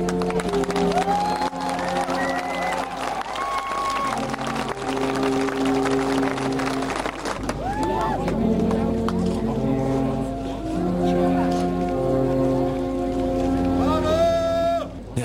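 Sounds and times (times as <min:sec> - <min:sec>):
applause from a large audience: 0:00.0 - 0:09.7
low sustained horn-like tones and sliding notes: 0:00.0 - 0:15.0.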